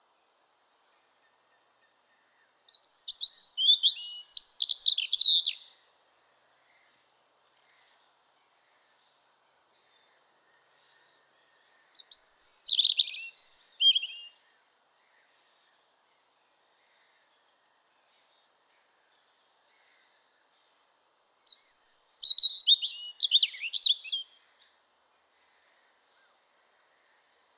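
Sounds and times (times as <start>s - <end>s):
European robin song: 2.7s - 6.4s, 9.0s - 14.4s, 19.1s - 24.5s.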